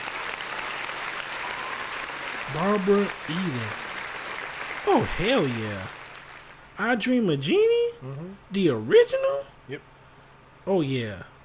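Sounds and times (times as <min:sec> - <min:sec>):
audience applause: 0:00.0 - 0:06.7
speech: 0:02.5 - 0:03.8, 0:04.8 - 0:06.0, 0:06.8 - 0:09.9, 0:10.6 - 0:11.3.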